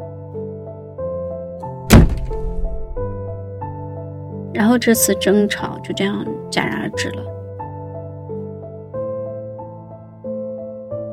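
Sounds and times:
soft sustained music: 0.0 - 11.1
bedroom door slammed hard: 1.9 - 3.5
speech: 4.6 - 7.3.

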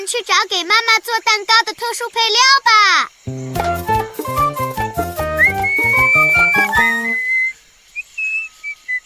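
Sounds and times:
speech: 0.1 - 3.9
bouncy instrumental tune: 3.3 - 7.3
high bright whistled melody: 3.3 - 9.0.

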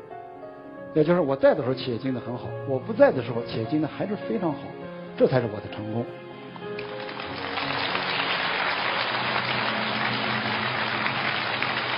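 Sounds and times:
speech: 0.9 - 6.2
audience applause: 6.8 - 11.9.

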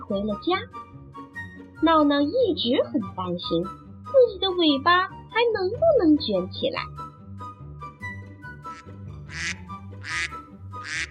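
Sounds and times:
speech: 0.1 - 1.0, 1.8 - 7.0
ducks quacking: 8.7 - 11.0.

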